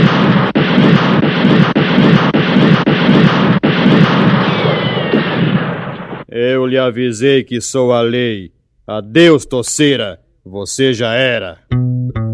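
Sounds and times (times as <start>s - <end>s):
gunfire shootout: 0.0s - 6.3s
speech: 6.7s - 12.3s.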